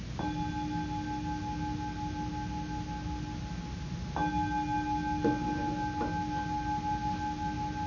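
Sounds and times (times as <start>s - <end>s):
meditation bell chime: 0.2s - 7.8s.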